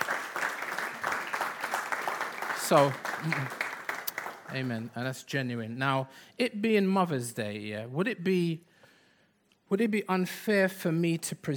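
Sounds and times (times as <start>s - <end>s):
audience applause: 0.0s - 4.7s
speech: 2.7s - 3.6s, 4.5s - 8.7s, 9.7s - 11.5s.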